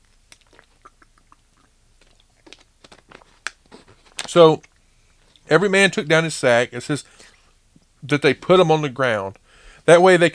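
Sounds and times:
person drinking water: 0.0 - 5.5
speech: 4.3 - 4.7, 5.5 - 7.3, 8.0 - 10.3.

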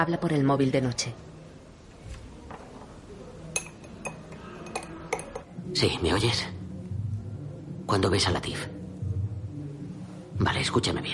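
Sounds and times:
speech: 0.0 - 1.3, 5.7 - 6.6, 7.9 - 8.8, 10.4 - 11.1
spoon stirring coffee: 3.5 - 5.5.

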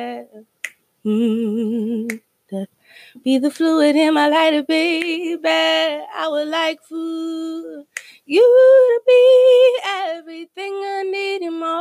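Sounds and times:
speech: 0.0 - 11.7
finger snaps: 0.6 - 0.9, 2.0 - 2.3, 4.9 - 5.2, 7.9 - 8.2.

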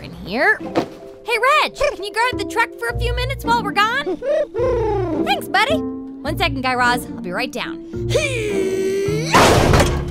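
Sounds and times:
speech: 0.3 - 9.7
door being kicked down: 9.3 - 10.0.

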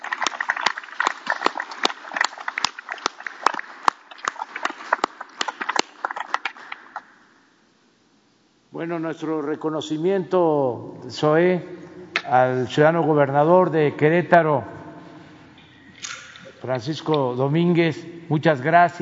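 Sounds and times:
applause: 0.0 - 7.0
speech: 8.8 - 14.8, 16.6 - 19.0.

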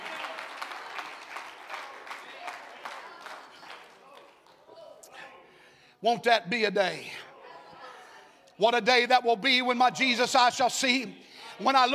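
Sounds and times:
audience clapping hands: 0.0 - 4.7
speech: 6.0 - 7.2, 8.6 - 11.9.

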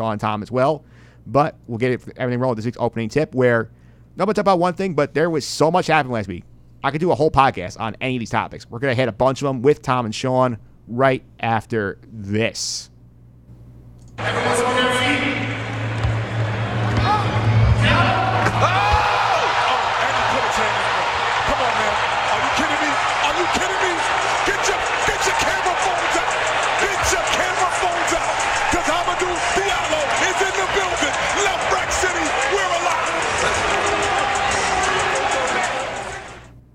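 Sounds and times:
speech: 0.0 - 12.9, 14.2 - 15.3
basketball arena crowd cheering after a slam dunk: 14.2 - 36.5.

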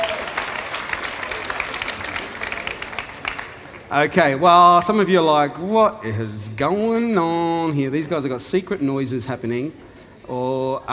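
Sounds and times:
audience applause: 0.0 - 4.0
speech: 3.9 - 10.9.

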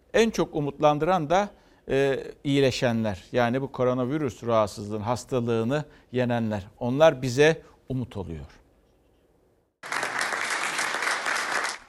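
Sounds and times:
speech: 0.2 - 8.6
group applause: 9.8 - 11.8.

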